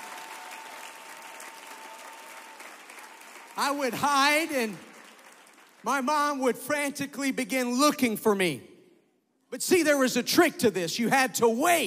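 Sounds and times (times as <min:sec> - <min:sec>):
audience applause: 0:00.0 - 0:05.9
speech: 0:03.6 - 0:04.9, 0:05.8 - 0:08.7, 0:09.5 - 0:11.8.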